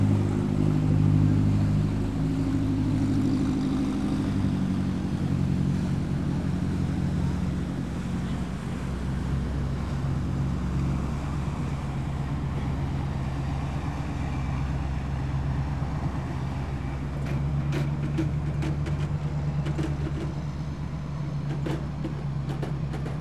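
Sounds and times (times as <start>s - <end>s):
busy canal in Italy: 0.0s - 23.1s.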